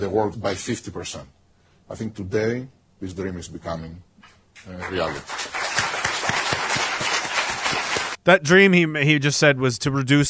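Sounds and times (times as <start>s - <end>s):
speech: 0.0s - 5.4s, 8.2s - 10.2s
audience clapping in played recording: 4.6s - 8.2s.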